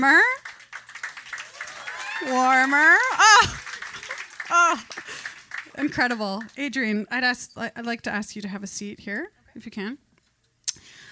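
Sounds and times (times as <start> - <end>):
speech: 0.0 - 0.6, 2.2 - 3.6, 4.5 - 5.2, 5.8 - 10.0
audience applause: 0.0 - 6.6.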